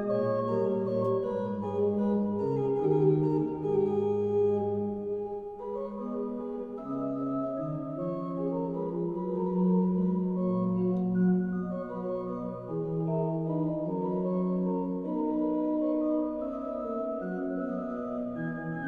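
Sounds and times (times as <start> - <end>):
classical suite in A minor: 0.0 - 18.8.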